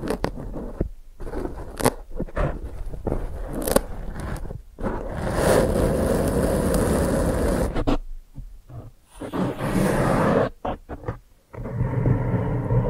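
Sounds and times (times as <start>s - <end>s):
dense crinkly scraping and crunching: 0.0s - 7.8s
rough rubbing: 0.0s - 8.0s, 8.7s - 12.0s.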